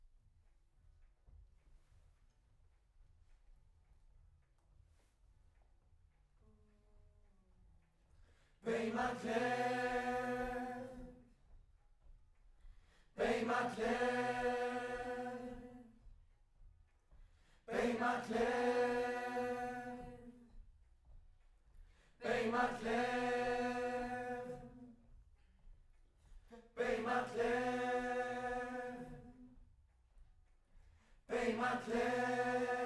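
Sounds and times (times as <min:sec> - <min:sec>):
distant choir: 0:08.6 - 0:11.3, 0:13.1 - 0:16.0, 0:17.6 - 0:20.5, 0:22.2 - 0:25.1, 0:26.5 - 0:29.6, 0:31.2 - 0:32.8.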